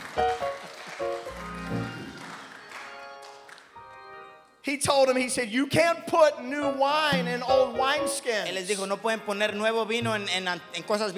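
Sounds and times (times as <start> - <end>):
sparse spattering of applause: 0.0 - 3.8
speech: 4.7 - 11.1.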